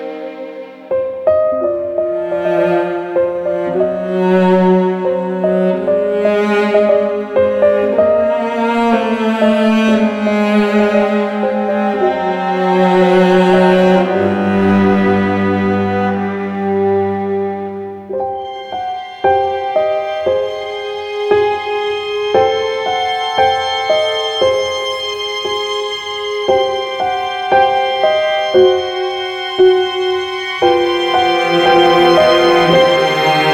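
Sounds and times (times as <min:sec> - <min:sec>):
piano: 0:00.0 - 0:33.5.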